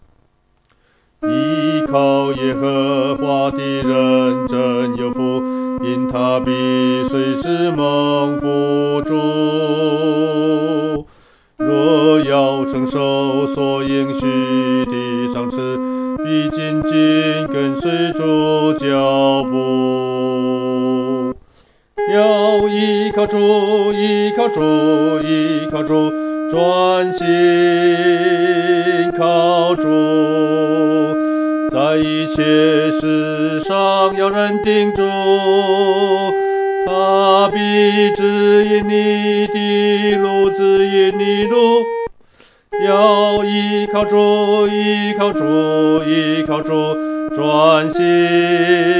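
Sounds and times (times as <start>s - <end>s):
solo singing, second voice: 1.2s - 21.4s, 22.0s - 42.1s, 42.7s - 48.9s.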